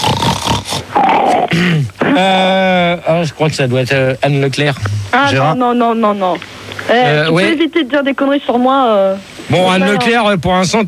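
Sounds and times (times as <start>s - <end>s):
loud snorting sniffing: 0.0s - 2.0s
speech: 3.0s - 10.8s.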